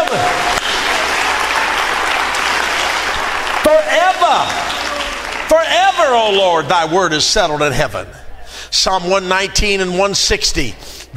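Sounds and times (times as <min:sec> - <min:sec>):
audience clapping hands: 0:00.0 - 0:06.7
speech: 0:06.1 - 0:11.1.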